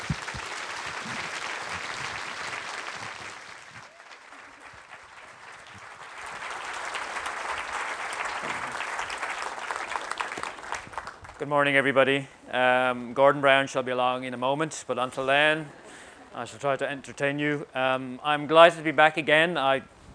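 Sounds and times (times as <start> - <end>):
audience applause: 0.0 - 11.4
speech: 11.4 - 15.8, 16.4 - 20.1.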